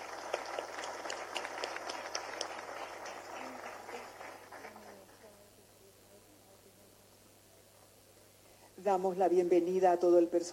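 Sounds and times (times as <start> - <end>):
audience applause: 0.0 - 5.1
speech: 8.8 - 10.5.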